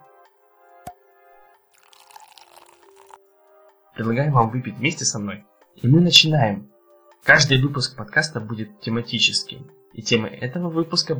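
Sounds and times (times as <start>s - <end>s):
wine being poured from a bottle: 1.7s - 3.2s
speech: 4.0s - 11.1s.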